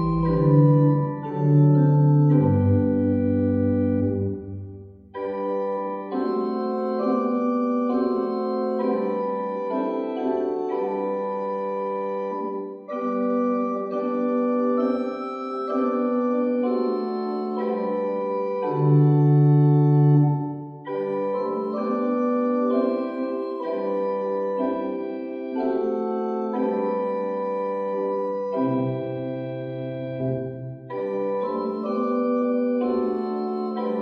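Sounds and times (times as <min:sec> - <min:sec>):
Prengel pipe organ: 0:00.0 - 0:34.0.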